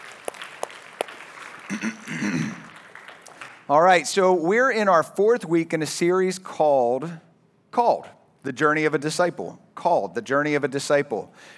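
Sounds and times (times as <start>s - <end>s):
audience applause in a large room: 0.0s - 3.7s
speech: 1.7s - 2.6s, 3.7s - 7.2s, 7.8s - 11.5s.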